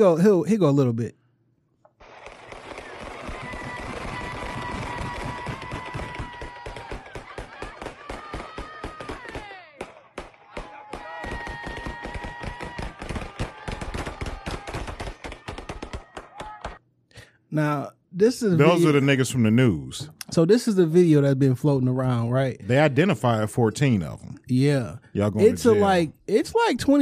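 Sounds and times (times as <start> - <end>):
speech: 0.0 - 1.2, 17.6 - 27.0
rapid gunfire from many pistols in a played video: 2.0 - 16.8.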